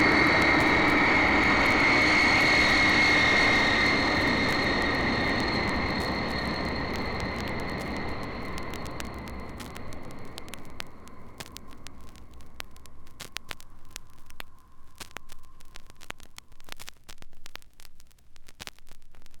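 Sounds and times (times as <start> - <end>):
Viscount aircraft landing: 0.0 - 12.5.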